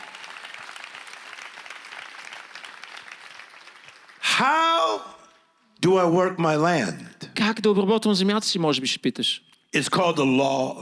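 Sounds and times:
audience applause: 0.0 - 4.5
speech: 4.4 - 5.2, 5.8 - 10.8.

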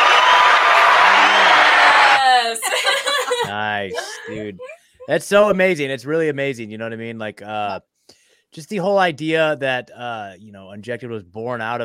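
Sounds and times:
applause button sound effect: 0.0 - 2.2
laughter: 2.1 - 5.8
speech: 4.3 - 7.9, 8.5 - 11.8.

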